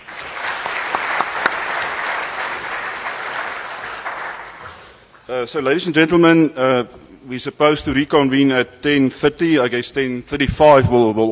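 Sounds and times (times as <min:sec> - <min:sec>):
audience applause: 0:00.0 - 0:05.0
speech: 0:05.3 - 0:11.2.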